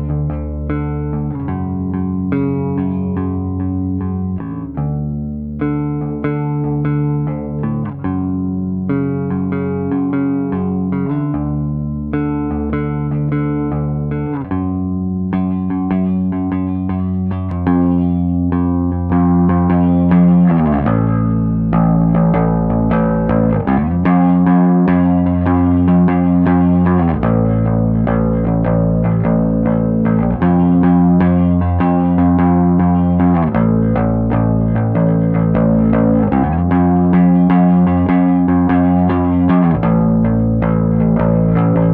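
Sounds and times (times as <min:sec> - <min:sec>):
bass guitar line recorded through a DI in mono: 0:00.0 - 0:41.9.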